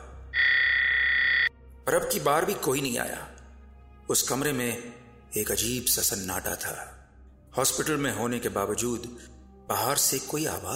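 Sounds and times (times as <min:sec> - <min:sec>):
hospital nurse call button tone: 0:00.4 - 0:01.5
speech: 0:01.9 - 0:03.4, 0:04.1 - 0:10.7.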